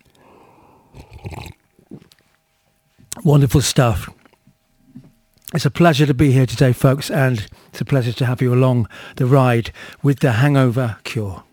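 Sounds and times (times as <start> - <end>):
exaggerated slurping of an iced oat milk latte through a straw: 0.9 - 2.2
speech: 3.2 - 4.2, 5.5 - 11.5.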